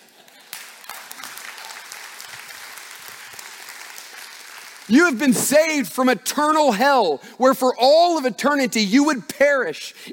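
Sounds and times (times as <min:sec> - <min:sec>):
audience clapping: 0:00.0 - 0:05.9
speech: 0:04.9 - 0:10.1.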